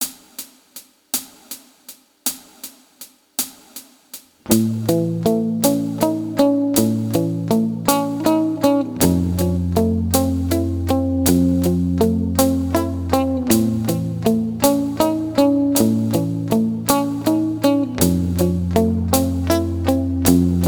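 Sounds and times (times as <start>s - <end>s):
guitar licks: 4.5s - 20.6s.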